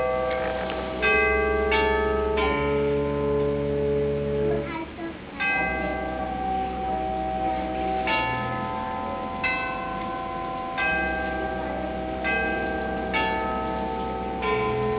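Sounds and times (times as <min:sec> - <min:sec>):
glockenspiel: 0:00.0 - 0:04.8, 0:05.4 - 0:14.9.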